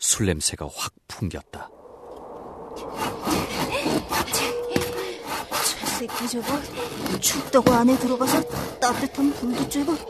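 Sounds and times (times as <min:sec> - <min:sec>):
speech: 0:00.1 - 0:01.8, 0:06.0 - 0:10.0
hand saw cutting wood: 0:03.0 - 0:10.0.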